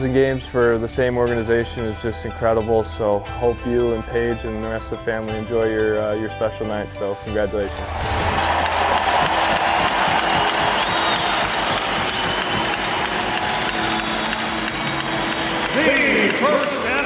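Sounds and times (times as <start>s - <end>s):
speech: 0.0s - 8.2s
large arena crowd applauding and cheering: 7.7s - 17.0s.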